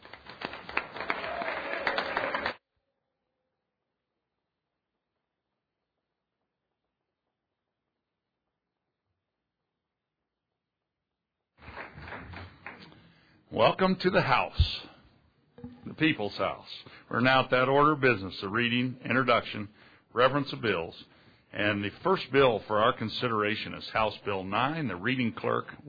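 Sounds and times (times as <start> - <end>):
audience applauding the Arapaho Student Council in a state House chamber: 0.0 - 2.6, 11.6 - 13.0
speech: 13.6 - 14.9, 16.0 - 25.8.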